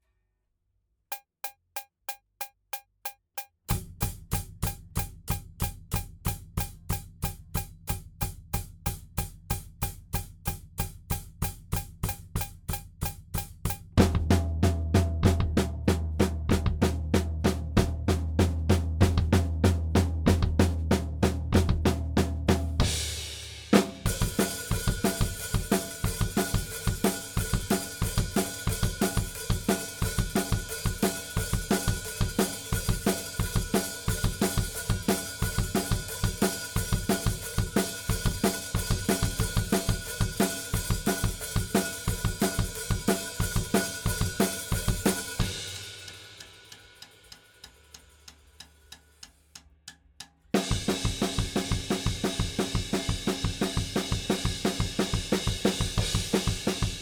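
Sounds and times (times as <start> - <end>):
drums: 1.1 - 57.0.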